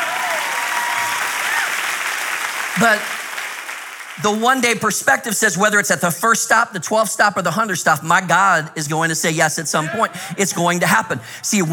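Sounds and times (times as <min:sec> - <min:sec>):
voices rising over applause: 0:00.0 - 0:04.2
church congregation applause: 0:00.0 - 0:04.8
speech: 0:02.8 - 0:03.2, 0:04.2 - 0:11.7.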